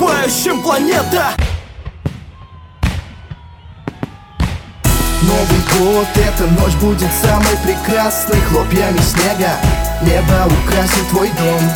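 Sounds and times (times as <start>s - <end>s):
speech: 0.3s - 1.5s, 5.2s - 11.7s
fireworks exploding: 1.4s - 5.2s.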